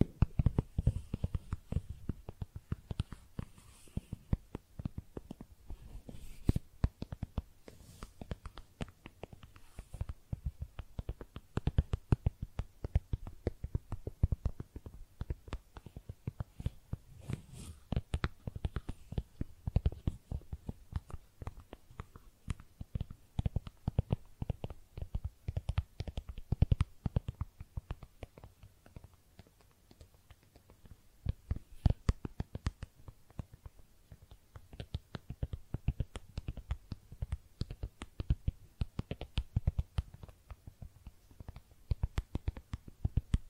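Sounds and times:
makeup tapping and scratching: 0.0 - 43.4.

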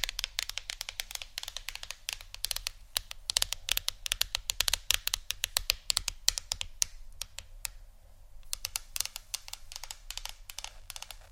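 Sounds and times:
fingers tapping on a phone or tablet screen: 0.0 - 7.8, 8.4 - 11.3.

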